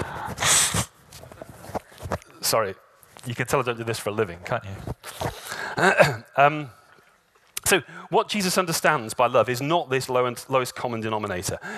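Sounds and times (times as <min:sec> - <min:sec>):
faint sniffly breaths: 0:00.0 - 0:01.0
person blowing nose into a handkerchief: 0:00.0 - 0:01.1
soft rustling: 0:01.0 - 0:05.5
speech: 0:02.5 - 0:05.2, 0:05.8 - 0:06.8, 0:07.7 - 0:11.7.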